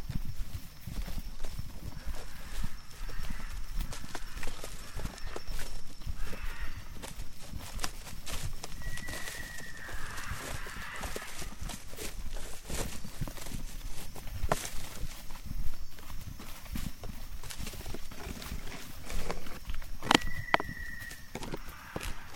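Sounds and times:
footsteps on a hike through the Tambopata rainforest in Peru: 0.0s - 22.3s
whistled call: 8.8s - 11.2s, 20.1s - 22.3s.

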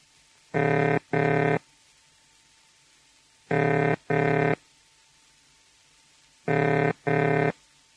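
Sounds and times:
telephone ringing tone: 0.6s - 1.6s, 3.5s - 4.6s, 6.5s - 7.6s.

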